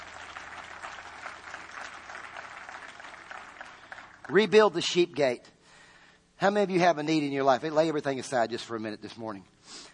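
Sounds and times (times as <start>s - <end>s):
audience applauding: 0.0s - 4.7s
speech: 4.3s - 5.6s, 6.4s - 9.9s.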